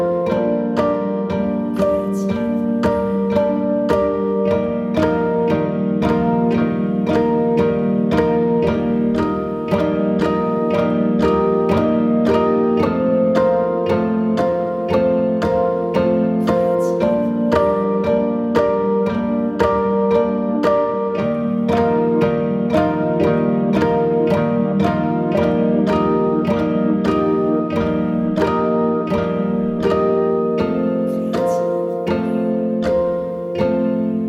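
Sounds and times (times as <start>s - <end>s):
piano pizzicato: 0.0s - 34.2s.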